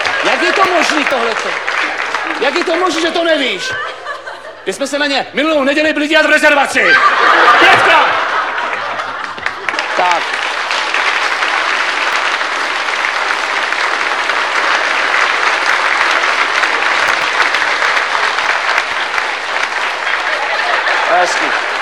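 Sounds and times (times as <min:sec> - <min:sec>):
audience applause: 0:00.0 - 0:04.2, 0:06.9 - 0:21.8
laughter: 0:00.0 - 0:05.2, 0:06.5 - 0:11.1, 0:14.4 - 0:21.8
speech: 0:00.7 - 0:04.0, 0:04.6 - 0:08.0.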